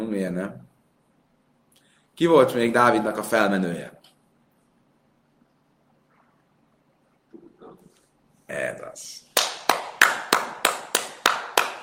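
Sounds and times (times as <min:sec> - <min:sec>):
speech: 0:00.1 - 0:00.7, 0:02.2 - 0:04.0, 0:08.5 - 0:09.2
applause: 0:09.4 - 0:11.8.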